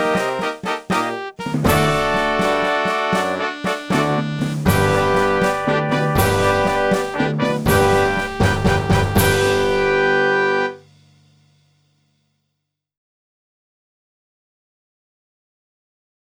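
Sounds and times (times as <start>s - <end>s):
saxophone: 0.0s - 10.8s.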